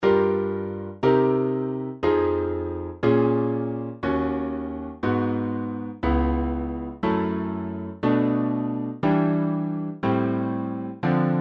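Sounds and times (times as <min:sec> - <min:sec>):
music cycle of fourths in minor: 0:00.0 - 0:11.3.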